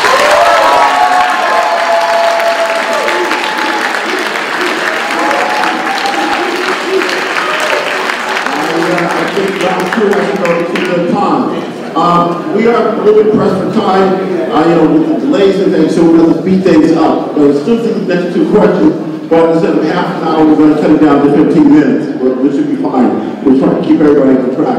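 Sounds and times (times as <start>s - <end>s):
scattered cheers: 0.0s - 9.7s
large audience clapping: 0.0s - 11.2s
speech: 12.0s - 24.7s.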